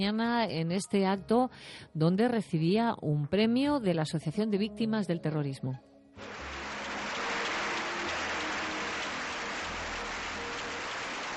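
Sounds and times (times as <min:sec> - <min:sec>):
speech: 0:00.0 - 0:06.4
crowd applauding: 0:06.2 - 0:11.3.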